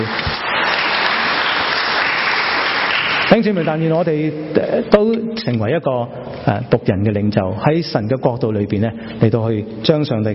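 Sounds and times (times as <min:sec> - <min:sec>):
church congregation applause during a service: 0:00.0 - 0:04.2
speech: 0:03.4 - 0:10.3.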